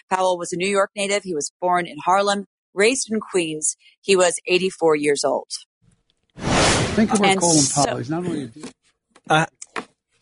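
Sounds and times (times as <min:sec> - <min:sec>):
speech: 0:00.1 - 0:05.7, 0:06.4 - 0:09.6
whoosh transition sound effect: 0:06.4 - 0:07.9.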